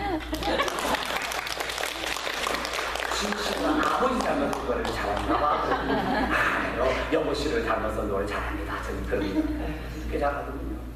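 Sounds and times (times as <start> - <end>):
laughter: 0.0 - 1.4, 4.9 - 7.1
audience applause: 0.4 - 5.5
speech: 4.1 - 10.8.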